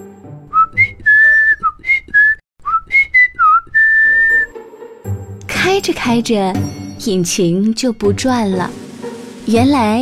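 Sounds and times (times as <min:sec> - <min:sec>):
person whistling a cheerful bouncy tune: 0:00.5 - 0:04.5
speech: 0:05.6 - 0:08.8, 0:09.5 - 0:09.9.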